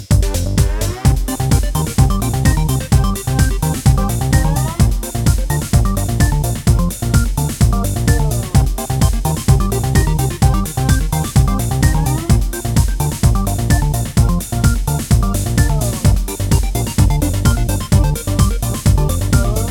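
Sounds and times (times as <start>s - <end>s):
funky looping chiptune music in high energy retro-arcade style: 0.1s - 19.7s.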